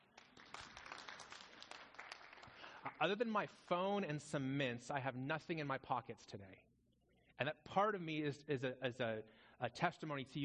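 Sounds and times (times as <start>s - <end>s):
audience applause: 0.0s - 3.0s
speech: 3.0s - 6.7s, 7.4s - 10.4s.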